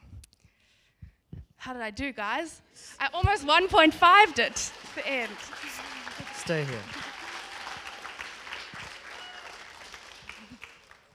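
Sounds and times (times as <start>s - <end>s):
speech: 1.6s - 7.0s
audience applause: 4.0s - 11.1s.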